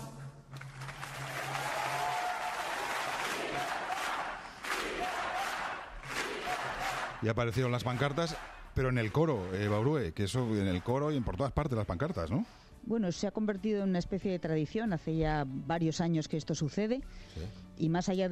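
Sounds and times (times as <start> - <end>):
audience applause: 0.5 - 11.2
audience shouts of freedom: 1.5 - 7.2
speech: 7.2 - 18.3.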